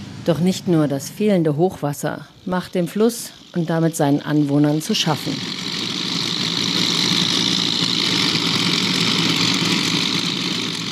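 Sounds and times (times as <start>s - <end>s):
speech: 0.2s - 5.8s
large dredger ships pumping sand from the Mekong riverbed: 1.6s - 10.8s.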